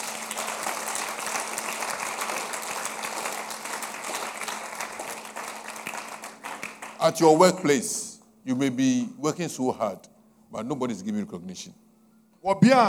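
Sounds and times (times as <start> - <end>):
audience clapping hands: 0.0 - 8.1
speech: 7.0 - 11.8, 12.4 - 12.8.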